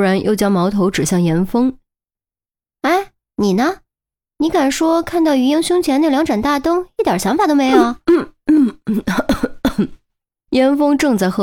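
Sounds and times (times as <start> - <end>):
speech: 0.0 - 1.8, 2.8 - 3.8, 4.4 - 11.4
choking cough: 7.7 - 10.0.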